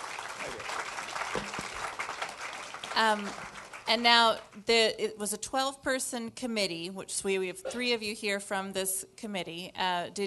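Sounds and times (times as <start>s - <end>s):
audience applause: 0.0s - 3.9s
speech: 3.0s - 10.2s.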